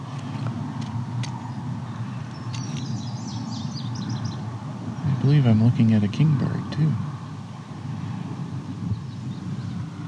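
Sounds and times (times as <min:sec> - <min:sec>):
low rumble of traffic: 0:00.0 - 0:10.0
indigo bunting singing: 0:01.3 - 0:07.7, 0:08.7 - 0:10.0
speech: 0:05.2 - 0:07.1.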